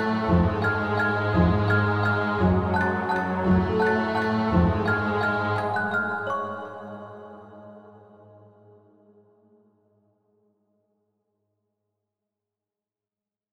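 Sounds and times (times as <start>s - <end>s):
instrumental music: 0.0s - 7.8s.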